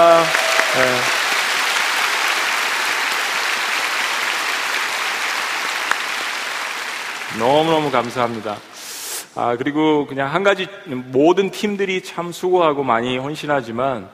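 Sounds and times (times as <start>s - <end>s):
audience applause: 0.0s - 8.8s
speech: 7.4s - 8.8s, 9.4s - 14.1s.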